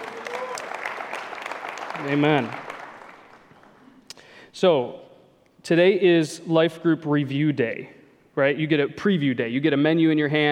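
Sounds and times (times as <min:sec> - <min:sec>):
audience clapping: 0:00.0 - 0:04.1
speech: 0:02.0 - 0:02.6, 0:04.6 - 0:05.0, 0:05.6 - 0:10.5.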